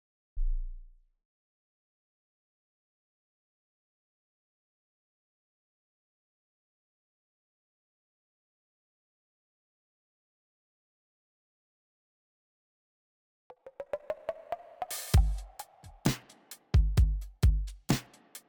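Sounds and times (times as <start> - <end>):
drums: 13.6 - 18.4.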